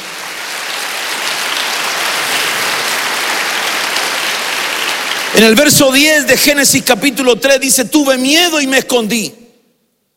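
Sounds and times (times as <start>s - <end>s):
audience clapping: 0.0s - 6.6s
speech: 5.4s - 9.4s.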